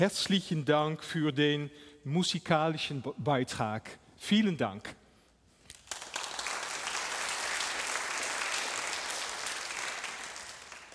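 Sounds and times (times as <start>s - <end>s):
speech: 0.0s - 5.0s
crowd applause: 5.9s - 10.9s.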